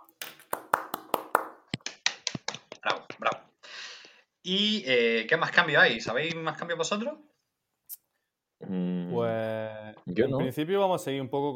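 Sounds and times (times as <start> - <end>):
hand clapping: 0.0 - 3.4
speech: 2.8 - 3.4, 4.4 - 7.3, 8.6 - 11.5.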